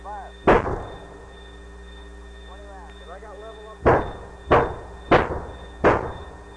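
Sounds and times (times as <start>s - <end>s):
artillery fire booms during a fire mission: 0.4s - 1.2s, 3.8s - 6.4s.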